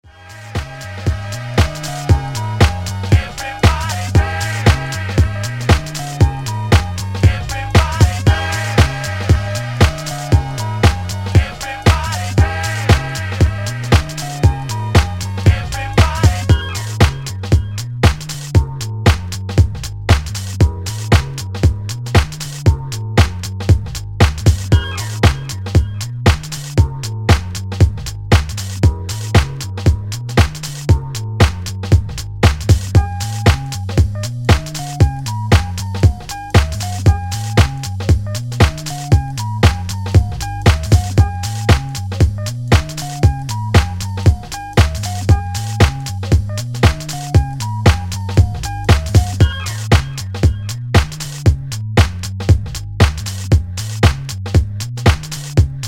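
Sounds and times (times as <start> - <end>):
jazz dance music: 0.0 - 55.8.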